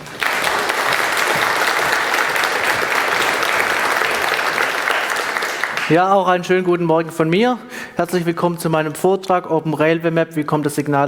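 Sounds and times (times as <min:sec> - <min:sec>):
audience applause: 0:00.0 - 0:06.3
speech: 0:05.9 - 0:11.0.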